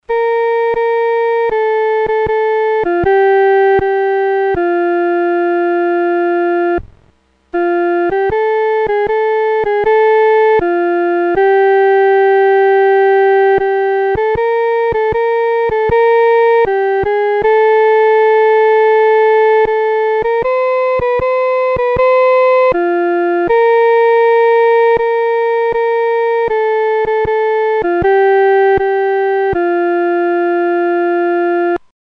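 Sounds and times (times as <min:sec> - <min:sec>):
solo first voice: 0:00.0 - 0:31.9.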